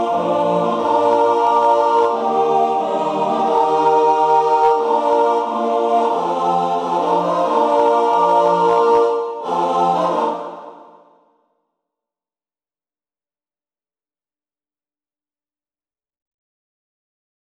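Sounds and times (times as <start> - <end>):
four-part mixed choir singing: 0.0 - 11.2.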